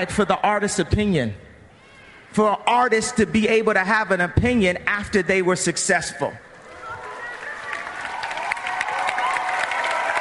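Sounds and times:
speech: 0.0s - 1.5s, 2.3s - 6.5s
crowd applauding: 6.5s - 10.1s
crowd cheers and shouts: 6.6s - 10.1s.

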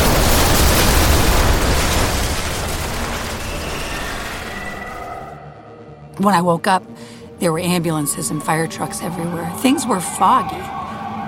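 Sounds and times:
hospital building explosion: 0.0s - 5.4s
speech: 6.2s - 10.8s.

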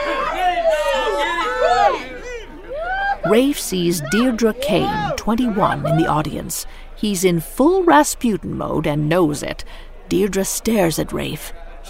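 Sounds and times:
crowd whooping and hollering: 0.0s - 6.2s
speech: 3.3s - 11.8s.

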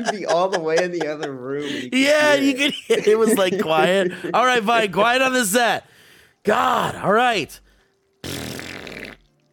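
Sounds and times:
laughter: 0.0s - 5.0s
speech: 0.0s - 7.6s
fart: 8.2s - 9.5s.

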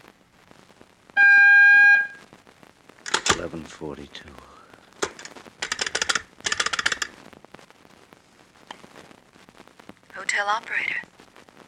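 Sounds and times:
crackle and hiss: 0.0s - 11.6s
telephone time-announcement signal tone: 1.2s - 2.2s
speech: 3.4s - 4.6s, 10.3s - 11.0s.

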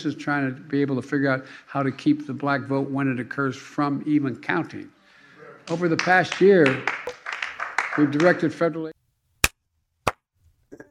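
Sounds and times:
speech: 0.0s - 5.0s, 5.7s - 7.1s, 8.0s - 9.0s
audience applause in played speech recording: 6.6s - 8.4s.

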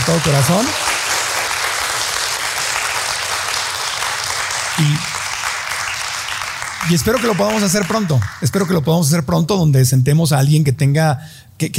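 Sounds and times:
audience applause: 0.0s - 8.9s
speech: 0.1s - 0.9s, 4.8s - 5.2s, 6.9s - 11.7s.

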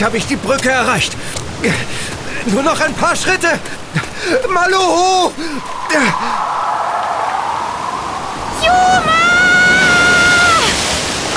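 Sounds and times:
speech: 0.0s - 6.6s
river water splashing at a bridge: 0.0s - 11.3s.

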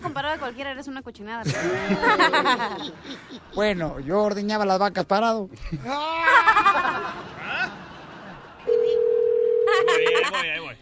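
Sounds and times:
speech: 0.2s - 7.4s
laughter: 1.4s - 3.9s, 5.6s - 8.7s, 9.7s - 10.8s
telephone dialing tone: 8.7s - 9.8s.

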